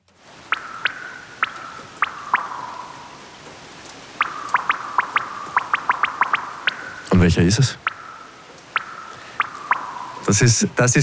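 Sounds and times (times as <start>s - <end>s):
raindrop drips playing a tune: 0.3s - 11.0s
speech: 7.2s - 7.9s, 10.3s - 11.0s.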